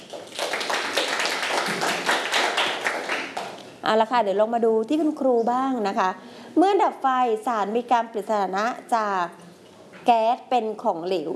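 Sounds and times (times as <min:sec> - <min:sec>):
classroom children clapping for classmates: 0:00.0 - 0:03.7
speech: 0:03.9 - 0:09.4, 0:10.0 - 0:11.3.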